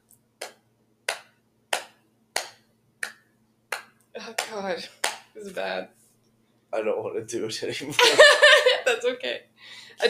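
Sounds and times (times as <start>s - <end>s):
hands clapping a beat: 0.4s - 5.3s
speech: 4.2s - 6.0s, 6.7s - 10.0s.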